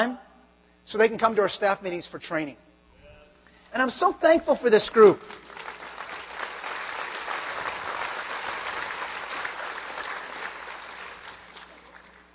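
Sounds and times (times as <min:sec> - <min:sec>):
speech: 0:00.0 - 0:00.3, 0:00.9 - 0:02.7, 0:03.7 - 0:05.4
audience clapping: 0:04.5 - 0:12.3.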